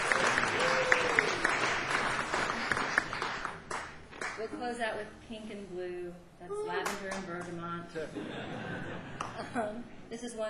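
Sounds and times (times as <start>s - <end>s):
audience applause welcoming a guest musician to the stage: 0.0s - 4.6s, 6.8s - 7.5s, 9.1s - 9.4s
speech: 4.7s - 10.4s
laughter: 8.1s - 9.8s.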